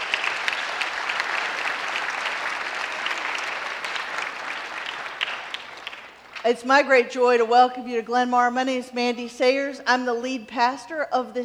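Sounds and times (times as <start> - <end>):
church audience clapping for child performers: 0.0 - 6.5
speech: 6.4 - 11.4.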